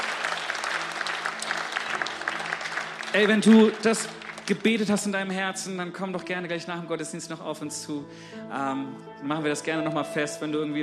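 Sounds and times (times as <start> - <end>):
audience applause: 0.0 - 5.4
speech: 3.1 - 10.8.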